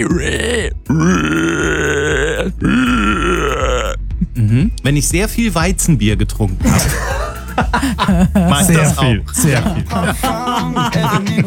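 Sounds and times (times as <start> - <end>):
speech: 0.0 - 1.5, 4.9 - 11.4
person imitating a screaming wild boar with harsh squeals: 0.0 - 4.8
laughter: 6.6 - 11.4.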